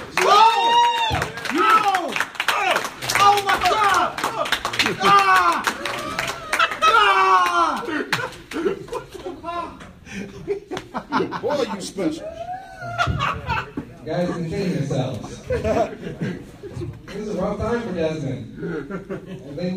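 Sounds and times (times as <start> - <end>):
audience applause: 0.0 - 8.8
whooping and cheering voices: 0.0 - 9.8, 12.2 - 13.7
laughter: 7.9 - 12.1, 12.8 - 17.4, 18.6 - 19.6.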